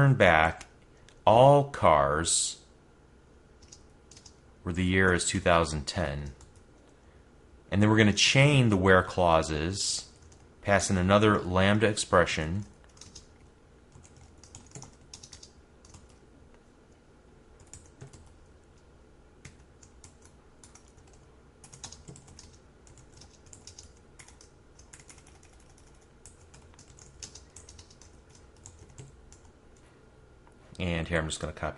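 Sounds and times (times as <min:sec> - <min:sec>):
speech: 0:00.0 - 0:00.7, 0:01.3 - 0:02.6, 0:04.6 - 0:06.4, 0:07.7 - 0:12.7, 0:31.3 - 0:31.7
faint low hum: 0:00.0 - 0:31.7
computer keyboard typing: 0:03.6 - 0:04.4, 0:12.7 - 0:16.2, 0:17.6 - 0:18.4, 0:19.4 - 0:29.8.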